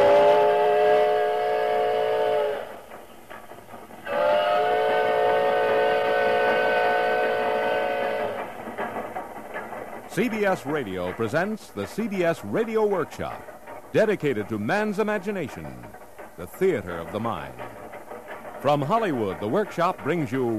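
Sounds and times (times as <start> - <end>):
steam locomotive whistle: 0.0 - 2.9, 4.0 - 8.5
moving steam train rumble and clatter: 0.0 - 20.5
speech: 10.2 - 17.6, 18.6 - 20.5.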